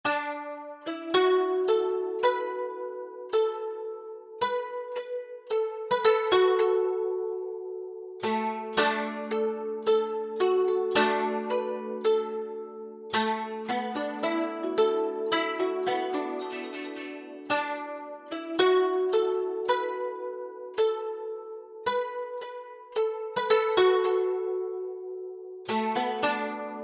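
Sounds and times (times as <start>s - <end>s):
traditional Japanese koto music: 0.0s - 26.8s.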